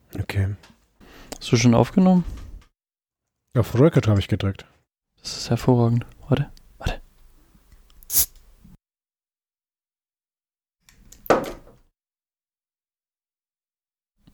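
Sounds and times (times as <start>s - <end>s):
speech: 0.1s - 0.7s, 1.4s - 2.4s, 3.6s - 7.0s
bottle of beer opened with a bottle opener: 8.0s - 8.4s.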